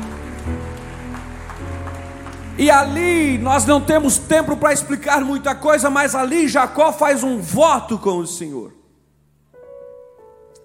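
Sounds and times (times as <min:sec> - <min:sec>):
audience applauding: 0:00.0 - 0:04.8
speech: 0:02.6 - 0:08.8.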